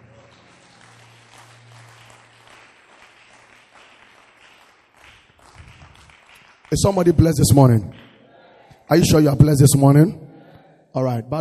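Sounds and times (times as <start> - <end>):
audience clapping: 0.0 - 9.0
speech: 6.7 - 8.0, 8.9 - 10.2, 10.9 - 11.3.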